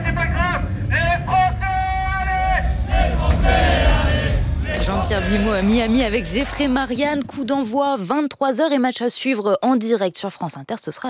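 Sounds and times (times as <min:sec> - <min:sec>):
supporters of the French national football team cheering and chanting: 0:00.0 - 0:07.7
speech: 0:05.1 - 0:11.0.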